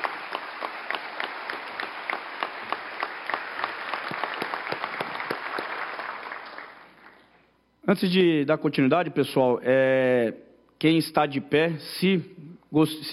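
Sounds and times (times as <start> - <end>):
audience applause: 0.0 - 7.2
speech: 7.9 - 13.1.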